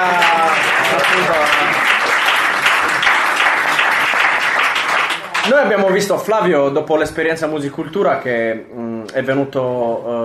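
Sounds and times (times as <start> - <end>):
audience applause: 0.0 - 5.8
speech: 1.0 - 1.9, 5.5 - 10.2.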